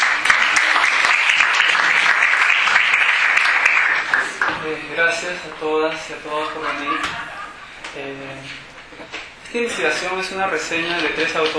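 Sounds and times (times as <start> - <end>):
audience applause: 0.0 - 4.6
speech: 4.7 - 7.3, 7.9 - 11.5
laughter: 6.2 - 7.9.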